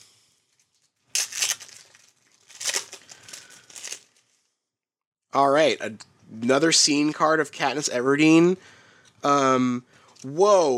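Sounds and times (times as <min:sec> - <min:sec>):
Hunger Games trading card pack wrapper crinkling and tearing: 0:00.5 - 0:04.4
speech: 0:05.3 - 0:10.7.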